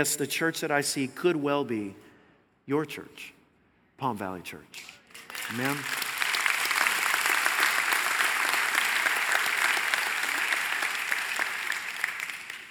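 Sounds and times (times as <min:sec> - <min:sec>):
speech: 0:00.0 - 0:02.1, 0:02.7 - 0:03.4, 0:04.0 - 0:06.0
audience clapping: 0:05.1 - 0:12.6.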